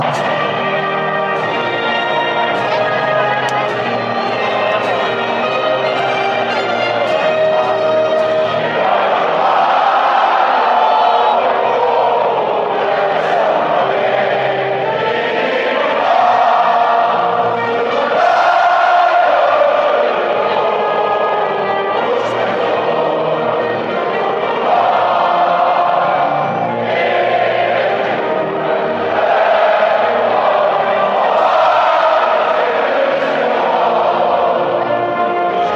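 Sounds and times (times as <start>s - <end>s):
fans chanting: 0.0s - 35.7s
national anthem: 0.0s - 35.7s.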